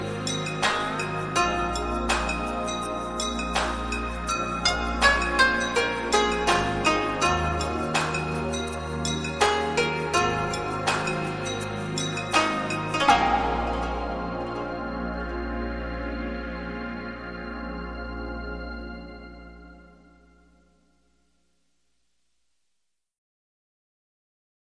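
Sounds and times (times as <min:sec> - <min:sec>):
koto ground beat: 0:00.0 - 0:17.2.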